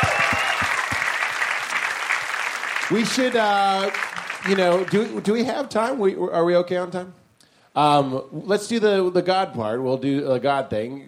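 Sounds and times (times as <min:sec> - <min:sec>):
audience applause: 0:00.0 - 0:05.5
speech: 0:02.9 - 0:07.2, 0:07.8 - 0:11.0.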